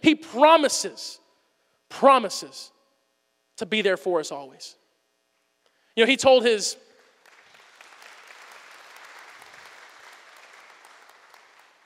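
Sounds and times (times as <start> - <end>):
speech: 0.0 - 1.2, 1.9 - 2.8, 3.6 - 4.8, 6.0 - 6.8
audience clapping: 7.0 - 11.8.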